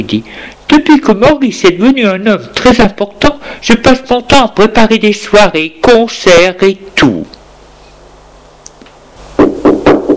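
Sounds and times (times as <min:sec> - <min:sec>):
speech: 0:00.0 - 0:07.4
knocking on a door: 0:09.4 - 0:10.1.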